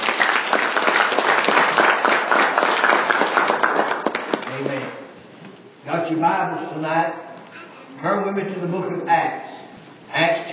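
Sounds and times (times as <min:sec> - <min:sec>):
audience clapping hands: 0:00.0 - 0:04.9
speech: 0:06.1 - 0:07.2, 0:08.0 - 0:09.6, 0:10.2 - 0:10.5.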